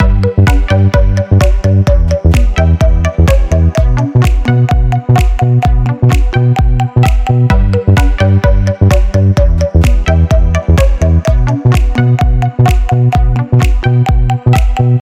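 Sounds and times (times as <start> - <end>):
space-themed instrumental techno electronic motif: 0.0 - 15.0.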